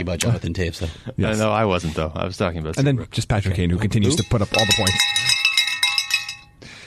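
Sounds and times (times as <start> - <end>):
speech: 0.0 - 5.4
small high-pitched bell ringing: 4.1 - 6.6.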